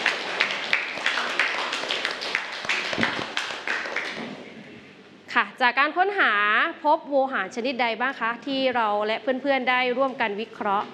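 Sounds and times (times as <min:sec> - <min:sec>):
classroom applause for a student group: 0:00.0 - 0:04.4
speech: 0:05.6 - 0:10.9.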